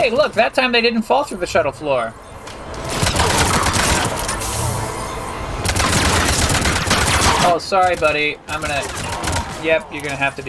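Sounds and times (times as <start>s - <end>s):
speech: 0.0s - 2.4s, 7.4s - 10.4s
enemy gunfire in a video game: 2.9s - 4.2s, 5.6s - 9.8s.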